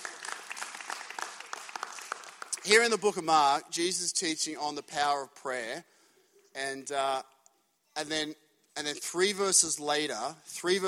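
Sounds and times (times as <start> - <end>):
audience applause: 0.0 - 2.8
speech: 2.6 - 5.9, 6.6 - 7.3, 8.0 - 10.8.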